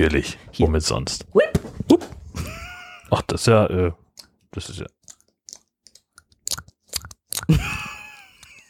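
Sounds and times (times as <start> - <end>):
speech: 0.0 - 2.1, 3.1 - 5.0
soft rubbery masturbator toy squeezed and squelching: 4.0 - 7.5.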